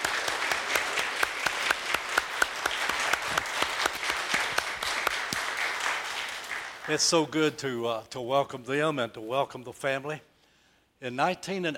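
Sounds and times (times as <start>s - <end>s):
audience applause welcoming a family of singers: 0.0s - 7.4s
speech: 6.9s - 10.3s, 11.0s - 11.7s.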